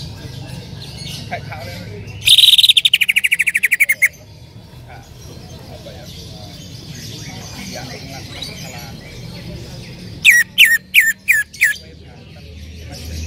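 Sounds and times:
bird buzzy trill and sharp notes: 2.2s - 4.1s, 10.2s - 11.8s.

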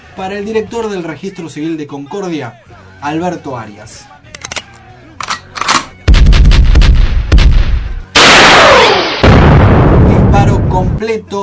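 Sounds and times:
speech: 0.2s - 4.2s, 10.8s - 11.4s
gunshot sound effect with booming gunfire and rapid cracks: 5.7s - 10.2s
heavy blast: 6.1s - 11.0s.

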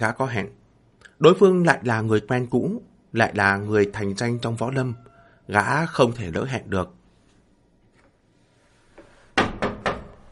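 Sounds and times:
speech: 0.0s - 0.6s, 1.2s - 7.0s
person knocking on the door of an inn room: 9.4s - 10.2s.

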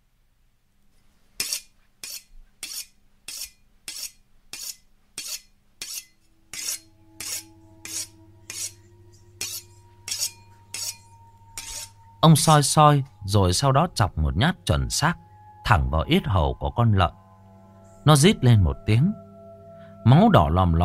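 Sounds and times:
butcher knife being sharpened on a whetstone: 1.4s - 8.8s, 9.4s - 12.0s
speech: 12.2s - 17.2s, 18.0s - 19.2s, 20.0s - 20.8s.

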